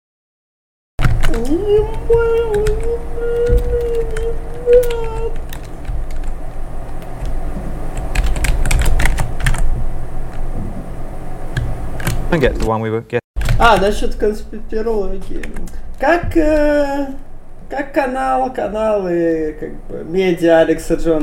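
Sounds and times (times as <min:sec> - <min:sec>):
typing on a computer keyboard: 0:01.0 - 0:06.3, 0:08.0 - 0:09.7
low rumble: 0:01.0 - 0:12.7, 0:13.4 - 0:21.2
speech: 0:01.3 - 0:05.1, 0:12.3 - 0:21.2.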